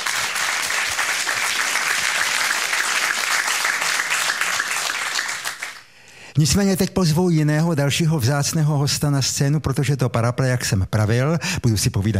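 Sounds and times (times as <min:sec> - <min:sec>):
audience applause: 0:00.0 - 0:05.9
speech: 0:06.4 - 0:12.1.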